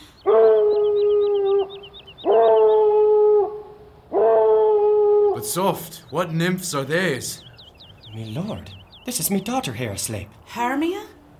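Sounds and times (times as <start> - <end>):
hounds baying in a pack: 0.0 - 6.2
speech: 5.5 - 7.5, 8.2 - 11.1.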